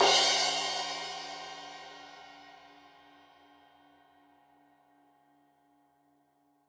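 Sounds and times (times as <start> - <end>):
15 inch crash cymbal edge hit: 0.0 - 2.5.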